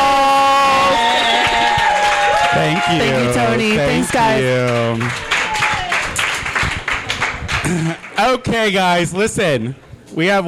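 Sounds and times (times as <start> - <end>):
crowd noise: 0.0 - 10.1
audience applauding the winner of a drag competition in Chicago: 0.9 - 8.8
speech: 2.6 - 5.3, 7.7 - 10.4.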